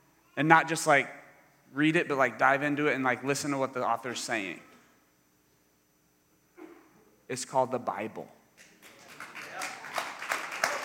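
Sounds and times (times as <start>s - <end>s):
speech: 0.4s - 4.7s, 7.3s - 8.4s
audience clapping: 8.6s - 10.8s.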